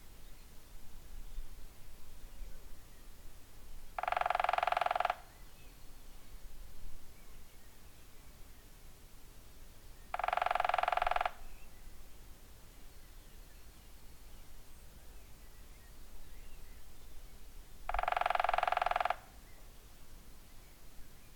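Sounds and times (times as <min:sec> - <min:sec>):
woodpecker drumming in a fast machine-gun roll of taps: 0:04.0 - 0:05.4, 0:10.1 - 0:11.4, 0:17.9 - 0:19.4.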